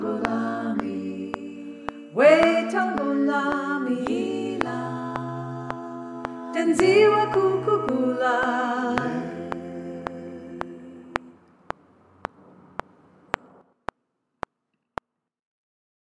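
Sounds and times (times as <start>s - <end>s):
choir alto descant singing: 0.0s - 11.4s.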